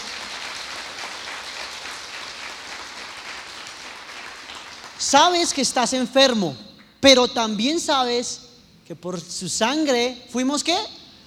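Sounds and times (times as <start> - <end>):
audience applause: 0.0 - 5.0
speech: 5.0 - 11.0.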